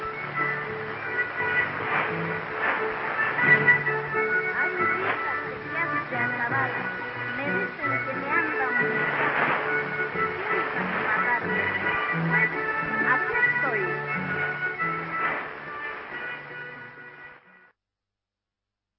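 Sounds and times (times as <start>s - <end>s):
shortwave radio broadcast on 4747 kHz from Peru: 0.0s - 17.4s.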